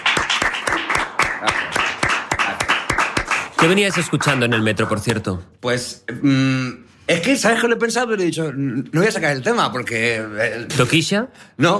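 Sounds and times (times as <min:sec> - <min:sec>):
applause: 0:00.0 - 0:05.2
speech: 0:03.6 - 0:11.7.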